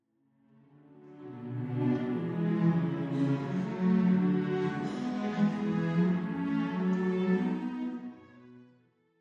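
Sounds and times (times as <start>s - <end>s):
pocket orchestra strings: 0.6s - 9.1s.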